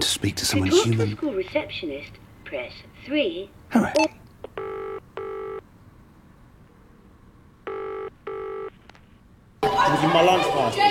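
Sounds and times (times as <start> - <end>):
speech: 0.2 - 4.8, 9.9 - 10.8
telephone ringing at a school reception desk: 4.6 - 5.6, 7.7 - 8.7.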